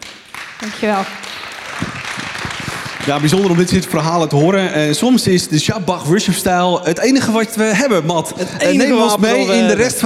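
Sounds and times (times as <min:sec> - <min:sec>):
audience applause: 0:00.0 - 0:04.4
speech: 0:00.6 - 0:01.9, 0:03.1 - 0:10.0.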